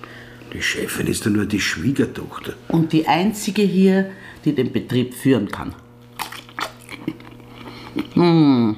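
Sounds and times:
speech: 0.5s - 5.8s, 8.2s - 8.7s
eating hot frankfurter sausages: 6.0s - 8.4s.

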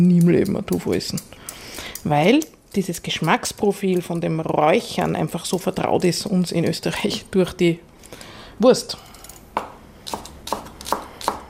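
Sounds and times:
speech: 0.0s - 9.1s
knife chopping spring onions and pickled ginger on a board: 9.6s - 11.4s.

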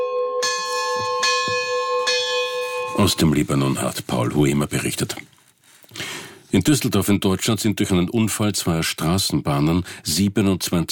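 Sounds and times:
church bells ringing: 0.0s - 3.8s
speech: 3.0s - 5.4s, 6.5s - 10.8s.

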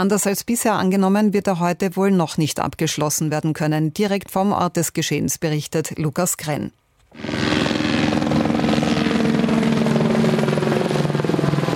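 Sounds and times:
speech: 0.0s - 7.5s
firefighting helicopters flying overhead: 7.2s - 11.7s.

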